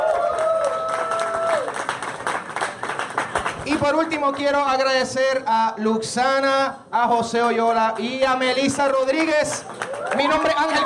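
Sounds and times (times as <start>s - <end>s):
audience applause: 0.0s - 3.6s, 9.2s - 10.8s
speech: 3.7s - 10.8s.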